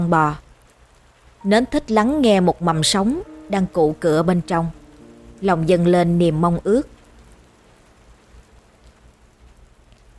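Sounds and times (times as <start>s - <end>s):
speech: 0.0s - 0.4s, 1.4s - 4.8s, 5.4s - 7.0s
rain falling: 0.0s - 10.1s.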